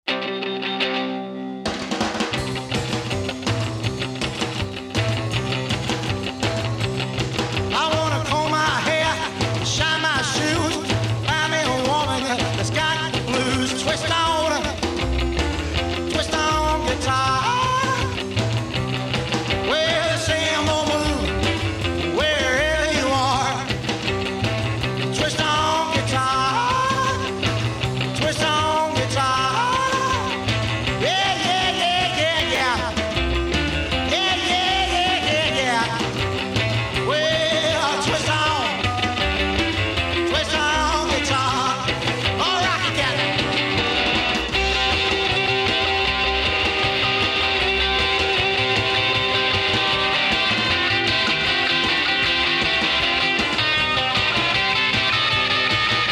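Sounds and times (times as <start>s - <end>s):
guitar playing: 0.1s - 56.0s.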